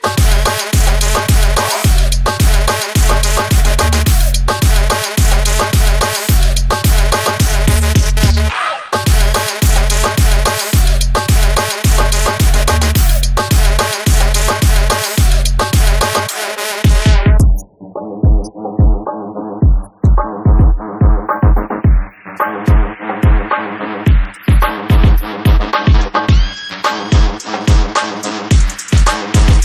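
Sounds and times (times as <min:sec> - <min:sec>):
karnay horn effect: 0:00.0 - 0:17.5
moombahton beat: 0:00.0 - 0:29.6.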